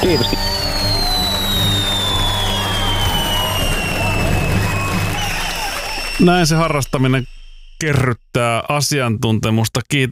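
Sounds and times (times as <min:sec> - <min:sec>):
speech: 0:00.0 - 0:00.4, 0:06.2 - 0:10.1
applause sound effect: 0:00.0 - 0:06.9.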